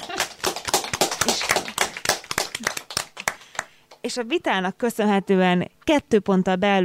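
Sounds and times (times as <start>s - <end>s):
applause: 0.0s - 4.0s
speech: 4.0s - 6.8s.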